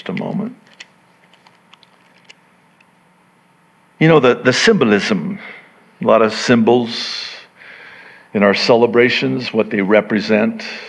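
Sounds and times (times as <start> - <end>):
plastic packaging peeled back on communion cups: 0.0 - 2.4
speech: 4.0 - 7.3, 8.3 - 10.8.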